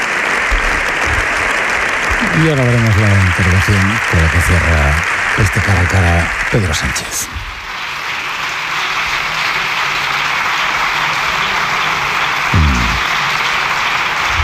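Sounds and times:
large crowd applauding in parliament: 0:00.0 - 0:14.4
speech: 0:02.4 - 0:07.5.

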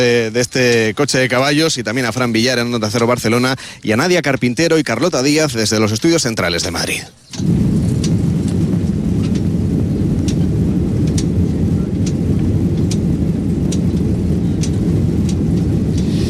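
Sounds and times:
speech: 0:00.0 - 0:07.9
airplane engine: 0:07.4 - 0:16.2.

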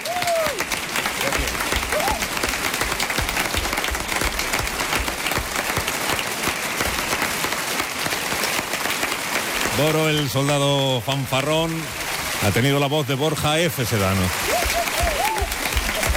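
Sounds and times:
audience applause: 0:00.0 - 0:16.1
speech: 0:09.8 - 0:14.5.

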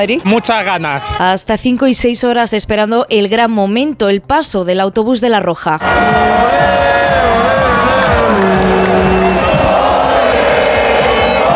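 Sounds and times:
speech: 0:00.0 - 0:07.3
huge crowd singing and cheering: 0:05.8 - 0:11.5.

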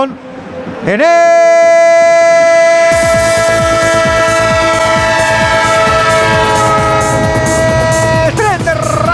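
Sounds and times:
speech: 0:00.0 - 0:01.5
loud sustained multi-tone train horn blast: 0:02.7 - 0:09.0.

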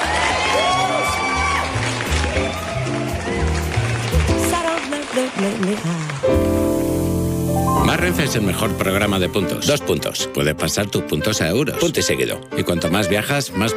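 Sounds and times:
audience applauding and cheering: 0:00.0 - 0:09.3
upbeat music: 0:01.1 - 0:13.7
speech: 0:05.5 - 0:06.3, 0:08.1 - 0:13.7.

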